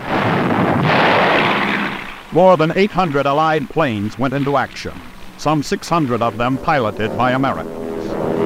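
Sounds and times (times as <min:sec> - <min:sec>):
artillery guns firing in a dense barrage: 0:00.0 - 0:05.5
speech: 0:02.3 - 0:07.8.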